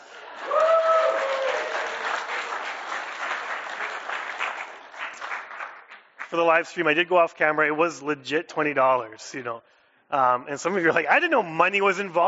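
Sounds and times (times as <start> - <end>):
audience applause: 0.0 - 6.4
speech: 6.3 - 12.2.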